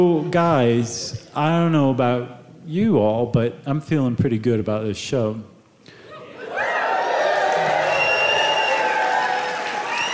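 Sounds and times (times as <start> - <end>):
speech: 0.0 - 5.5
audience applause: 6.5 - 10.1.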